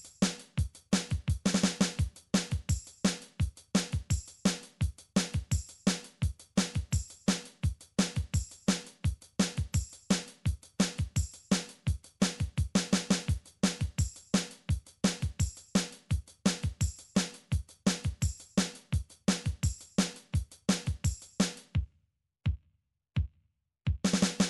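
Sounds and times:
MIDI country drum patterns: 0:00.0 - 0:21.8, 0:23.9 - 0:24.4.

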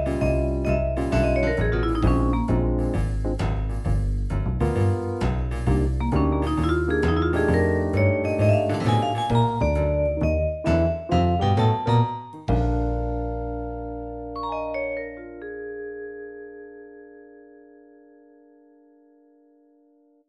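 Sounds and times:
midi blues: 0:00.0 - 0:14.0.

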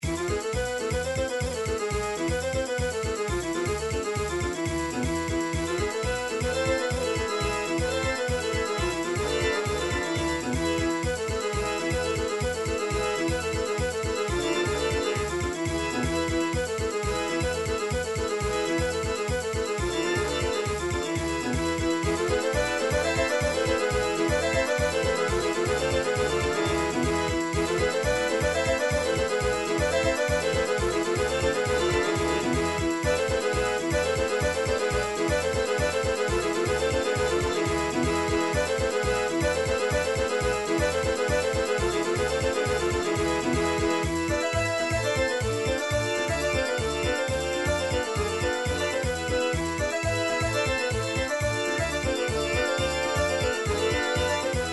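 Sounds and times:
Bulgarian horo folk dance music in MIDI: 0:00.0 - 0:54.7.

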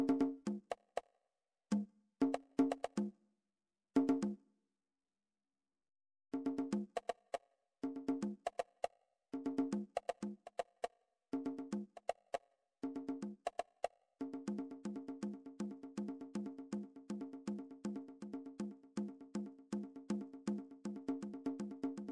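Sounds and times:
MIDI conga drum pattern: 0:00.0 - 0:00.9, 0:01.7 - 0:03.1, 0:06.4 - 0:08.8, 0:09.4 - 0:10.8, 0:11.4 - 0:22.1.

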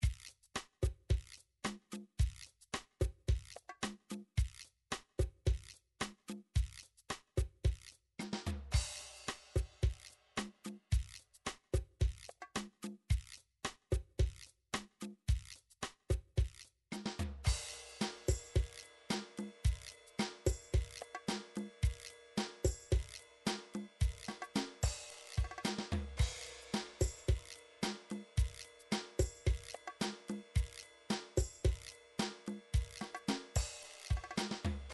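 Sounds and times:
MIDI rhumba drum beat: 0:00.0 - 0:34.9.

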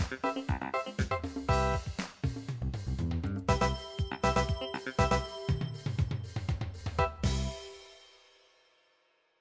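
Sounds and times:
MIDI disco music: 0:00.0 - 0:02.6, 0:03.4 - 0:07.8.

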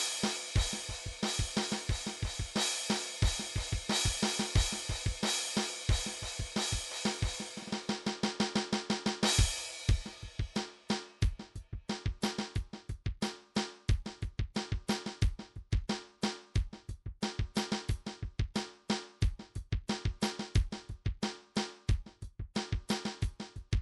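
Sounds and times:
hard rock snare drum train: 0:00.0 - 0:23.8.

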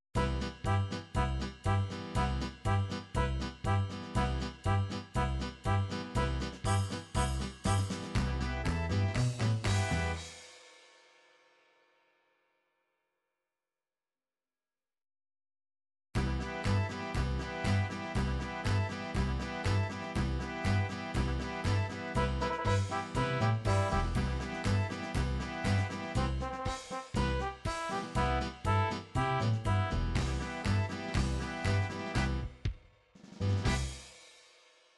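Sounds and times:
MIDI polka music: 0:00.2 - 0:10.4, 0:16.2 - 0:32.8, 0:33.4 - 0:34.0.

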